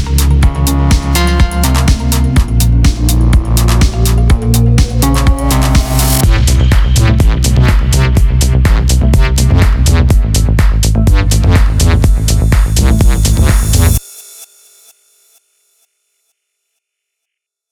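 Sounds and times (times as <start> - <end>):
melodic techno music: 0.0 - 14.0.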